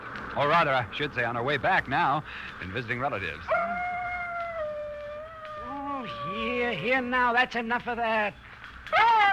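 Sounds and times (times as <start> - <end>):
speech: 0.4 - 3.9, 6.4 - 9.2
dog making noise: 3.5 - 6.1.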